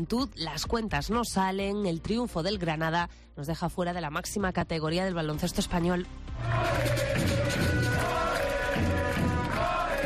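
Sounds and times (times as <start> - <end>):
speech: 0.0 - 7.6
long applause from basketball arena crowd: 6.5 - 10.0.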